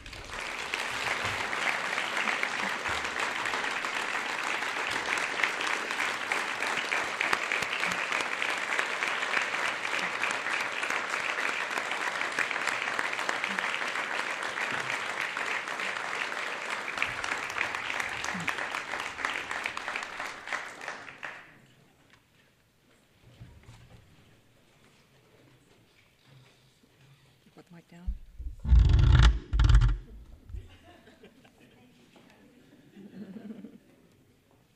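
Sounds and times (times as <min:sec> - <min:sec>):
crowd applauding Fort Recovery's Citizen of the Year at an award ceremony: 0:00.0 - 0:21.7, 0:29.1 - 0:30.7
laughter: 0:01.4 - 0:03.6, 0:30.5 - 0:34.0.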